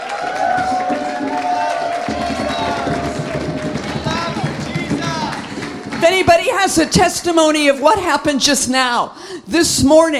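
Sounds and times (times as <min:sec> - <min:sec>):
audience cheering: 0:00.0 - 0:06.9
speech: 0:06.1 - 0:10.1.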